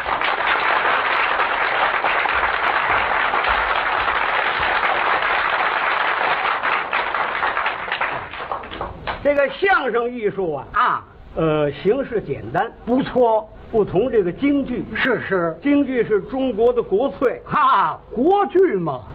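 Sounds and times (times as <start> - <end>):
audience applause: 0.0 - 9.2
speech: 9.3 - 19.1.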